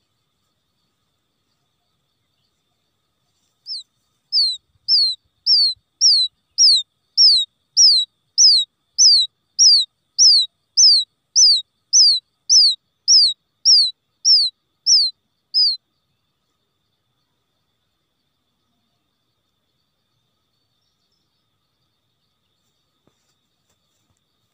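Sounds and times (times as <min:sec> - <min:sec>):
quail chick peeping: 0:03.4 - 0:15.8.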